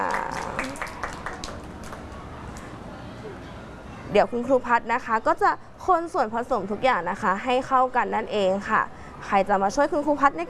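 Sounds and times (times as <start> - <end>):
people clapping for a child: 0.0 - 2.7
speech: 4.1 - 10.4.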